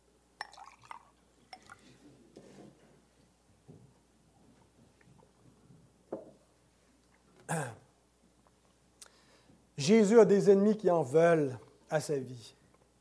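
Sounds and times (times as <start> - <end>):
water being poured: 0.4 - 1.8
speech: 7.5 - 7.8, 9.8 - 12.6.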